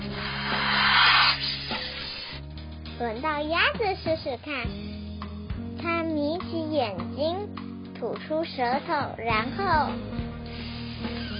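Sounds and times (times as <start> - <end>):
low tonal drone: 0.0 - 2.4
voice imitating a snake's hiss: 0.0 - 2.4
speech: 3.0 - 5.0, 5.8 - 10.2.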